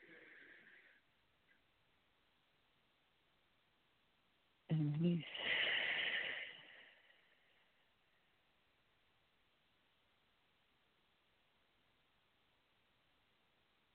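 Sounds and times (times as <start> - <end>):
deep breath during a guided Christian prayer: 5.3 - 7.7.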